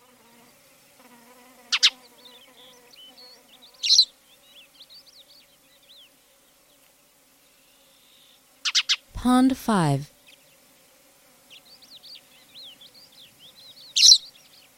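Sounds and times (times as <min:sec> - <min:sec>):
Spanish sparrow harsh chirps: 0:01.8 - 0:06.1, 0:11.5 - 0:14.7
other birds soft whistled twitters: 0:02.0 - 0:06.1, 0:11.5 - 0:14.7
speech: 0:09.2 - 0:10.1.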